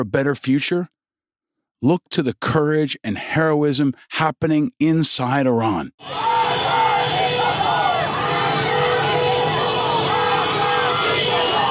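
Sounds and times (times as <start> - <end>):
speech: 0.0 - 0.9, 1.8 - 6.3
cars honking: 6.0 - 11.7
street crowd chanting and shouting: 6.0 - 11.7.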